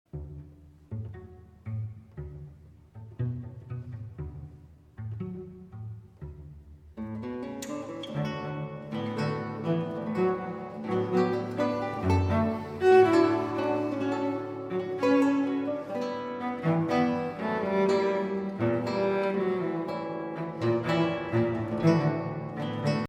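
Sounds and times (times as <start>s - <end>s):
solo tango music: 5.1s - 23.0s.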